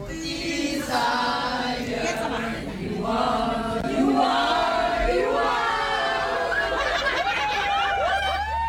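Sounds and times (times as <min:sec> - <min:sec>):
concert fans singing together in a tram: 0:00.0 - 0:07.3
concert fans shouting and cheering in a packed tram: 0:05.0 - 0:08.6
whoops and laughter: 0:06.5 - 0:08.6.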